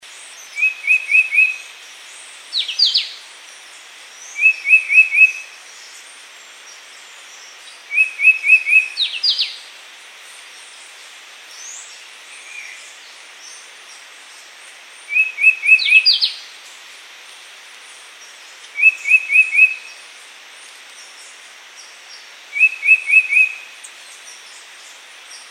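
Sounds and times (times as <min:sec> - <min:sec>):
yellow-browed shrike-vireo calling: 0:00.5 - 0:01.7, 0:04.3 - 0:05.6, 0:07.8 - 0:09.6, 0:15.1 - 0:16.5, 0:18.6 - 0:20.1, 0:22.5 - 0:23.9.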